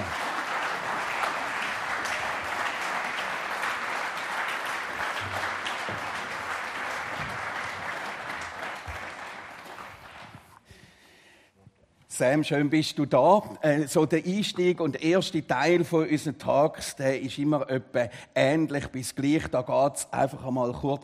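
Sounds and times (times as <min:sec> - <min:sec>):
warm thunderous audience applause: 0:00.0 - 0:10.5
speech: 0:12.2 - 0:21.0.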